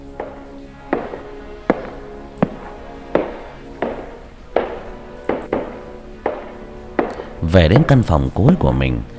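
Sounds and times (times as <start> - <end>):
woman's heel footsteps echoing in a third-floor hallway: 0.1 - 7.4
speech: 7.6 - 9.1.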